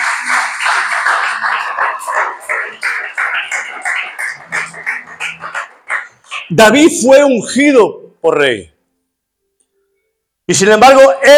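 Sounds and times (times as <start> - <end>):
church congregation clapping in praise: 0.0 - 7.2
speech: 6.5 - 8.7, 10.5 - 11.3.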